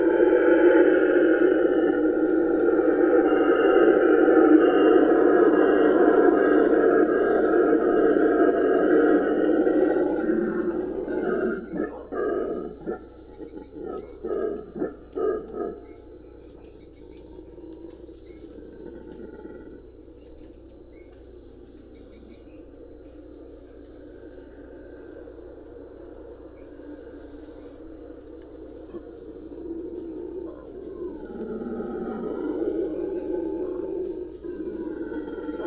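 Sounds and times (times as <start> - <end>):
Bolivian red howler Alouatta sara howling: 0.0 - 16.6, 17.6 - 20.1, 28.4 - 35.6.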